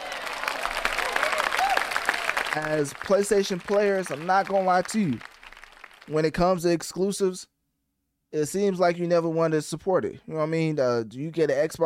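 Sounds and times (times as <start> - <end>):
scattered cheers: 0.0 - 2.8
crowd clapping: 0.0 - 6.4
speech: 2.6 - 5.3, 6.1 - 7.5, 8.3 - 11.8.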